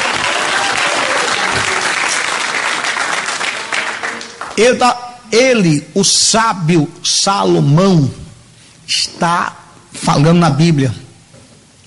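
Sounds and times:
audience applauding: 0:00.0 - 0:04.7
speech: 0:04.6 - 0:08.2, 0:08.9 - 0:11.0.

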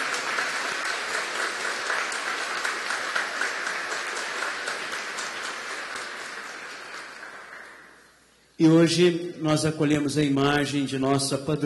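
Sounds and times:
warm round of applause: 0:00.0 - 0:08.2
speech: 0:08.6 - 0:11.6.

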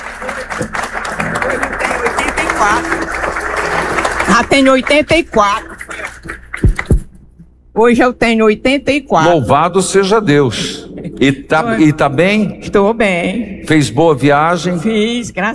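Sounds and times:
audience applause: 0:00.0 - 0:07.1
speech: 0:00.6 - 0:00.9, 0:04.4 - 0:05.7, 0:07.8 - 0:15.5.

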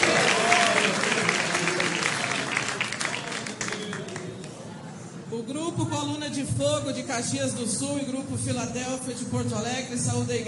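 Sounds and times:
audience applauding: 0:00.0 - 0:04.7
speech: 0:06.4 - 0:10.4.

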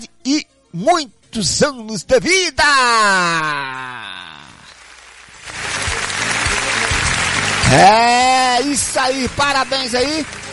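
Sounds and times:
speech: 0:00.3 - 0:04.0, 0:07.7 - 0:10.5
applause sound effect: 0:04.4 - 0:10.5.

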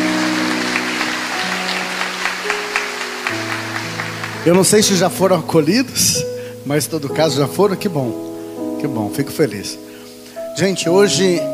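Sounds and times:
crowd applause: 0:00.0 - 0:05.4
sustained low keyboard chords: 0:00.0 - 0:11.5
speech: 0:04.4 - 0:09.9, 0:10.6 - 0:11.5.

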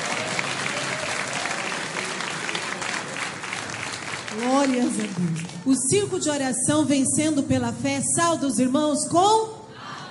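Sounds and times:
audience applauding: 0:00.0 - 0:05.8
speech: 0:04.4 - 0:09.6.

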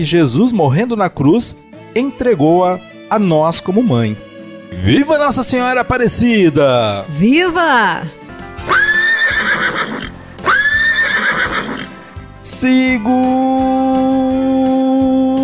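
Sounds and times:
speech: 0:00.0 - 0:08.8, 0:12.6 - 0:15.1
horse neighing: 0:08.6 - 0:12.1.

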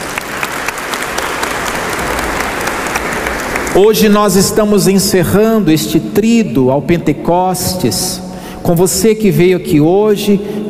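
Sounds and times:
audience applause: 0:00.0 - 0:04.0
speech: 0:03.8 - 0:10.6.

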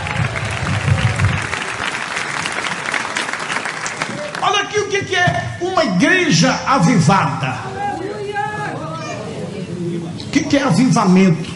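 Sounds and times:
audience applauding: 0:00.0 - 0:05.0
speech: 0:05.0 - 0:07.8, 0:10.3 - 0:11.5.

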